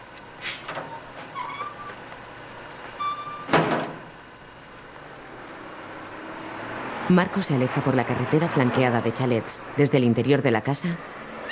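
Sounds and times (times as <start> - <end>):
steady high insect drone: 0.0 - 11.5
garden gate creaking open: 0.4 - 2.0, 3.0 - 4.1
garden gate clank: 3.2 - 4.1
speech: 7.1 - 11.5.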